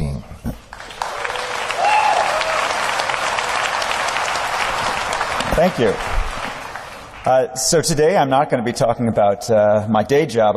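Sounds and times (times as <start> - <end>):
applause welcoming Chris Anderson, editor of Wired Magazine: 0.7 - 7.4
speech: 5.6 - 6.2, 7.2 - 10.5.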